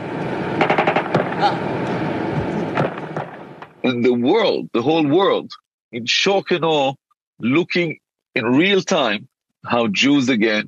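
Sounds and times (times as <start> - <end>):
gunfire: 0.6 - 1.5, 2.7 - 3.7
speech: 1.4 - 1.7, 3.9 - 10.6.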